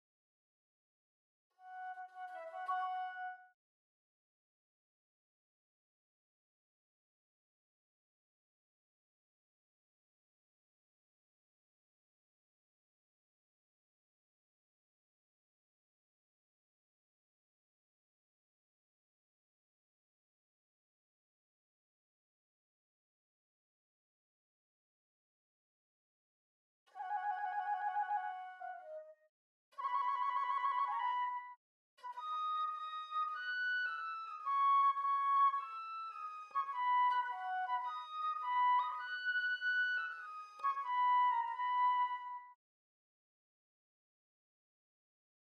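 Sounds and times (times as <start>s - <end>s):
flute: 1.6s - 3.6s, 26.9s - 42.6s.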